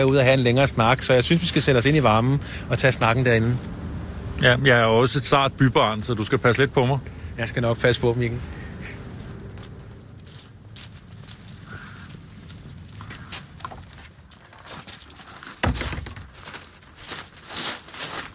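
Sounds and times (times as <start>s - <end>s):
speech: 0.0s - 3.8s, 4.4s - 9.0s
footsteps crossing a farmyard and climbing steps to a farmhouse: 8.8s - 18.3s.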